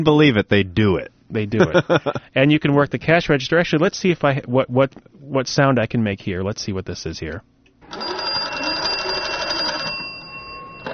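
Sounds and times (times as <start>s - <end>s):
speech: 0.0s - 8.1s
early telephone bell ringing: 7.9s - 10.9s.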